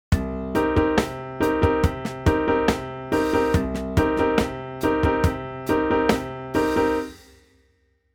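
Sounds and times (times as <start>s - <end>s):
funk piano rhythm chords: 0.1s - 7.2s.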